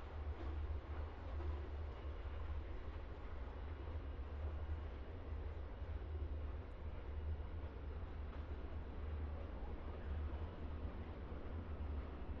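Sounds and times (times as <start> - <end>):
trains: 0.0 - 12.3.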